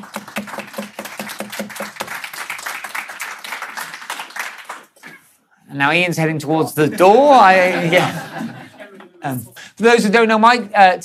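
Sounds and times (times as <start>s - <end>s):
audience applause: 0.0s - 5.0s
speech: 5.7s - 8.5s, 9.2s - 11.0s
laughter: 6.8s - 9.5s.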